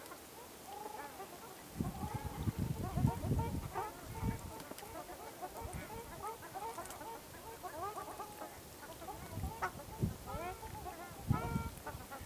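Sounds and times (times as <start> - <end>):
ruddy shelducks honking with nasal trumpeting notes: 0.8 - 12.2.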